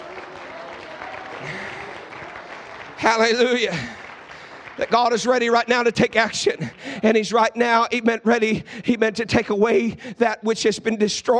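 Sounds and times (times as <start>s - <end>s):
audience clapping hands: 0.0s - 7.6s
speech: 1.4s - 1.8s, 3.0s - 4.0s, 4.8s - 11.3s.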